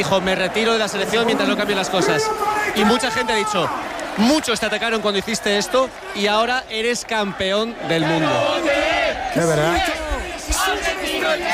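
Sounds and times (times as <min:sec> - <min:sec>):
crowd shouting a chant: 0:00.0 - 0:04.2, 0:07.2 - 0:11.5
speech: 0:00.0 - 0:10.0.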